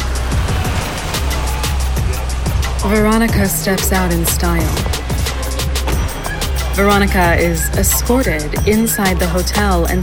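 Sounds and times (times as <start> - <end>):
car driving, low engine rumble as a radio drama sound effect: 0.0 - 9.6
speech: 2.8 - 5.0, 6.8 - 10.0.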